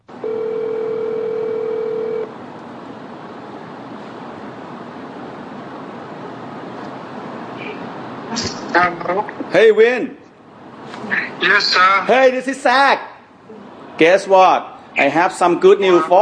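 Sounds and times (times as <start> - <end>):
telephone tone: 0.1 - 2.3
hissy telephone line noise: 4.0 - 8.8
speech: 8.4 - 10.2, 11.4 - 13.1, 14.0 - 16.2.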